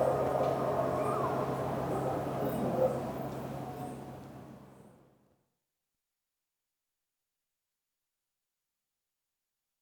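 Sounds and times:
city skyline atmosphere in Istanbul: 0.0s - 5.1s.

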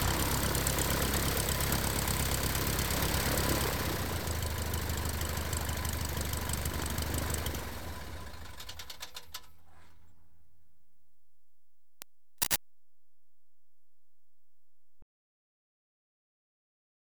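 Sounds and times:
aircraft engine starting up, running and switching off: 0.0s - 9.9s.

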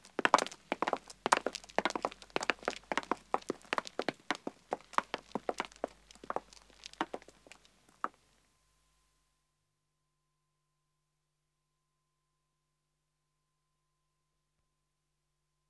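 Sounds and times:
footsteps of two men and two women walking on pavement: 0.0s - 8.2s.

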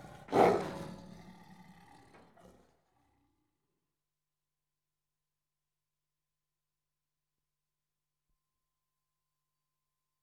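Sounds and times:
tiger growling and snarling in countryside of India, Pakistan and Nepal: 0.0s - 3.2s.

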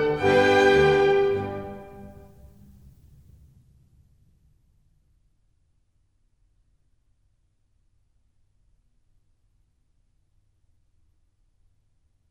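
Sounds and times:
minuet: 0.0s - 2.4s.

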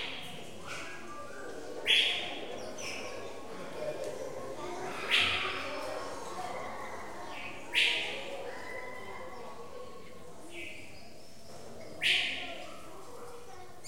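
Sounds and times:
children in a zoo bird house: 0.0s - 13.8s
birds in a zoo bird house interior: 1.0s - 3.5s, 4.8s - 5.9s, 7.3s - 8.3s, 10.5s - 12.7s.

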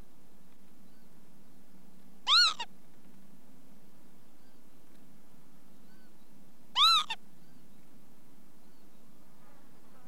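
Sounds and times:
Northern Lapwing calls: 2.2s - 2.7s, 6.7s - 7.2s.

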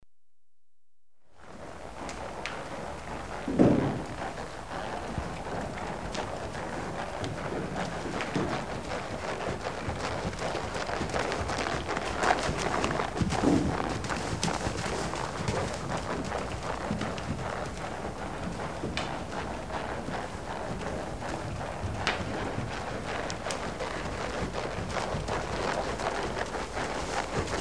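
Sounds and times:
horse hooves clopping at a walk: 1.4s - 27.5s.

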